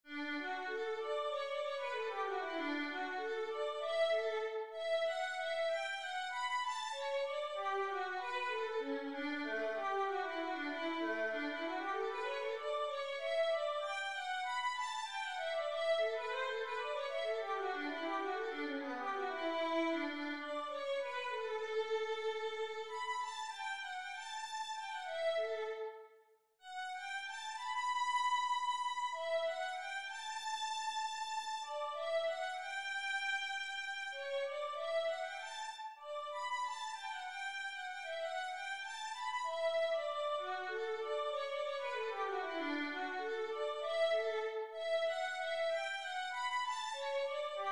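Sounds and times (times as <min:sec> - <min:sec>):
violin: 0:00.1 - 0:47.7.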